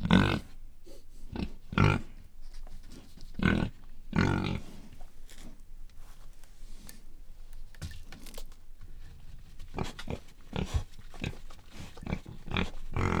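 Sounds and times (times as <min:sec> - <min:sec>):
domestic pig grunting loudly: 0:00.0 - 0:00.6, 0:01.3 - 0:02.2, 0:03.4 - 0:04.8, 0:09.7 - 0:13.1.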